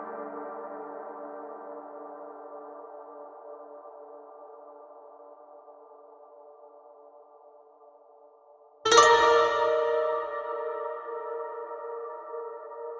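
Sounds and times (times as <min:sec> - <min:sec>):
koto: 0:08.9 - 0:12.9.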